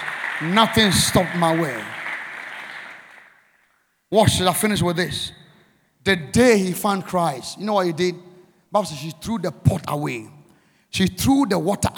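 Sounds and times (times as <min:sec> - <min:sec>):
audience clapping: 0:00.0 - 0:03.8
speech: 0:00.4 - 0:02.0, 0:04.1 - 0:05.4, 0:06.0 - 0:11.9.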